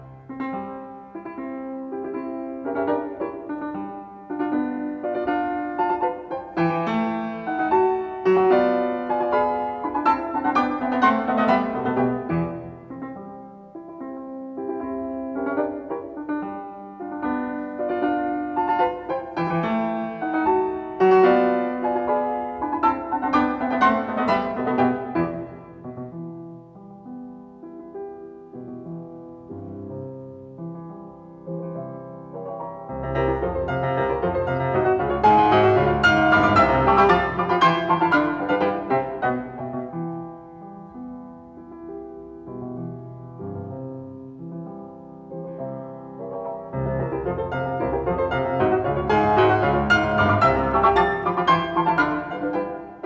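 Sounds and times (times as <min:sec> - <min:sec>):
Allegro vivace piano piece in C major: 0:00.0 - 0:53.0.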